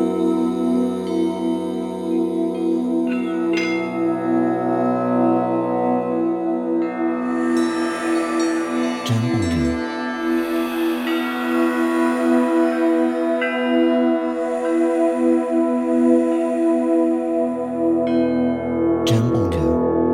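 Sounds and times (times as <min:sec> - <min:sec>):
meditation sitar music for yoga: 0:00.0 - 0:20.0.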